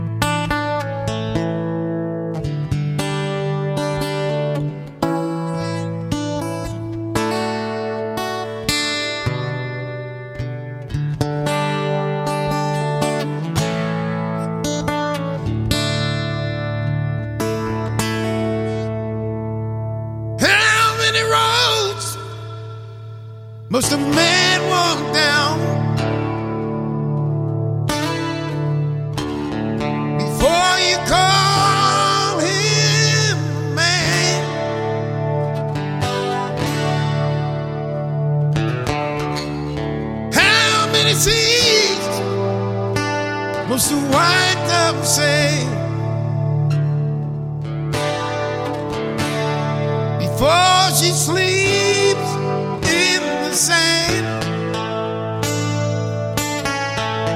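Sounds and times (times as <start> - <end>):
acoustic music: 0.0 - 57.3.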